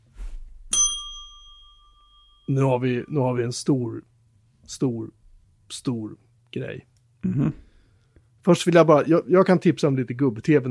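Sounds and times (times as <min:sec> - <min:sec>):
bright bell chime ding: 0:00.7 - 0:03.1
speech: 0:02.5 - 0:04.1, 0:04.7 - 0:07.7, 0:08.4 - 0:10.6.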